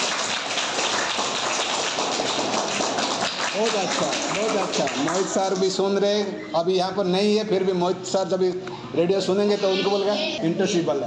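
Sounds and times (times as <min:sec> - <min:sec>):
group of people clapping: 0:00.0 - 0:06.0
speech: 0:03.6 - 0:11.0.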